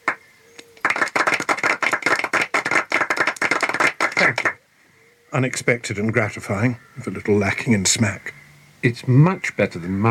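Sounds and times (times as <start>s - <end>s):
audience clapping: 0.0s - 0.2s, 0.8s - 4.6s
speech: 5.4s - 10.0s.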